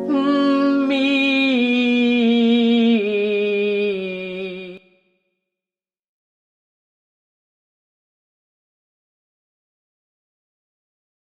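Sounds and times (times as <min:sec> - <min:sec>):
person humming a descending legato line: 0:00.1 - 0:04.8.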